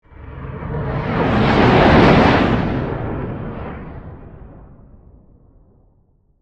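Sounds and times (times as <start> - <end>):
fighter spaceship flying past like a jet: 0.0 - 4.9.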